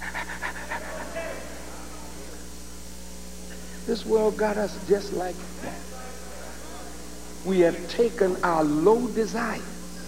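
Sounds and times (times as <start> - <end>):
voice imitating a dog panting with its tongue out: 0.0 - 1.3
faint steady hum: 0.0 - 10.0
speech: 3.9 - 5.9, 7.4 - 9.7.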